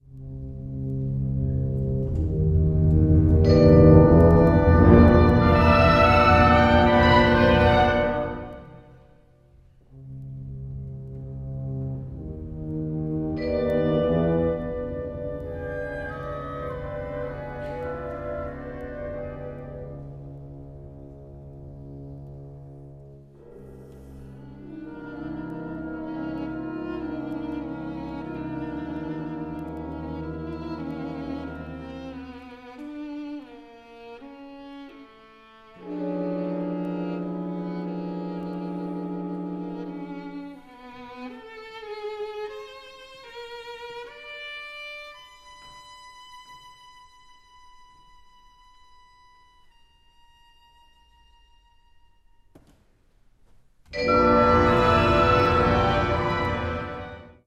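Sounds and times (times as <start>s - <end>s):
piano: 0.0s - 9.3s, 9.9s - 34.1s, 53.9s - 57.4s.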